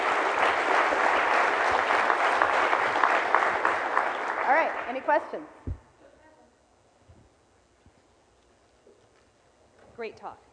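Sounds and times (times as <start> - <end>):
audience applause: 0.0 - 5.3
speech: 5.1 - 5.7, 10.0 - 10.5.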